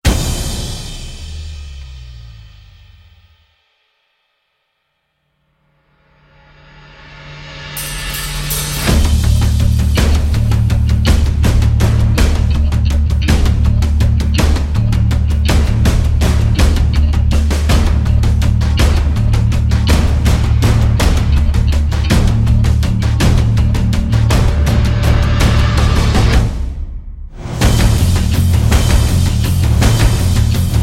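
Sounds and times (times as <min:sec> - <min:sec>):
bass: 0:00.0 - 0:03.4, 0:06.2 - 0:30.8
drums: 0:00.0 - 0:04.0, 0:06.2 - 0:30.8.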